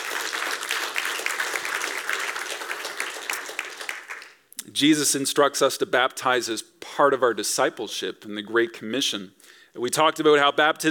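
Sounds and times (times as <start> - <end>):
audience applauding: 0.0 - 4.4
speech: 4.8 - 10.8.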